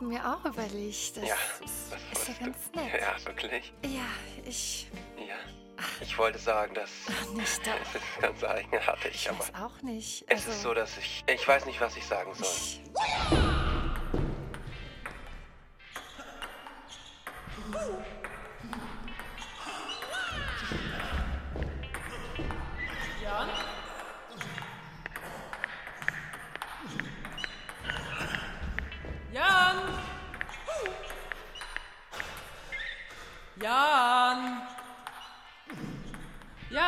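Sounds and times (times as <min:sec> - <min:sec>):
speech: 0:00.0 - 0:13.5
laughter: 0:06.9 - 0:09.2
ping-pong ball bouncing: 0:13.3 - 0:33.8, 0:34.4 - 0:36.7.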